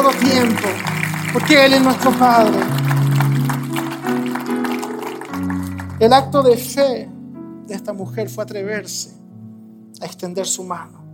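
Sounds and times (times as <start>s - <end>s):
audience applauding: 0.0s - 6.4s
sustained low keyboard chords: 0.0s - 11.1s
speech: 0.1s - 2.8s, 6.0s - 7.1s, 7.7s - 9.2s, 10.0s - 11.0s.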